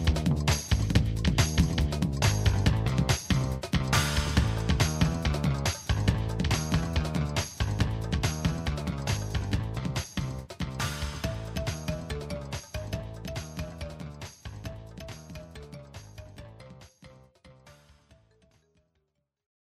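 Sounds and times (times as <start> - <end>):
crash music: 0.0 - 15.4.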